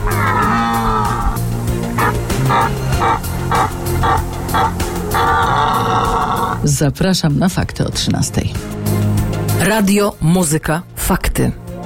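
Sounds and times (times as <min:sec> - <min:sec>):
red deer stags roaring during the rut: 0:00.0 - 0:06.6
speech: 0:06.6 - 0:08.8, 0:09.6 - 0:11.6.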